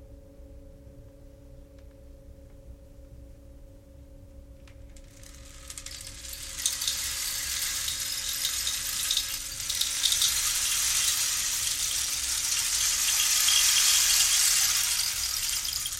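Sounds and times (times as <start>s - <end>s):
rain stick trickling: 5.0s - 15.9s
Tibetan singing bowl humming: 5.1s - 15.9s.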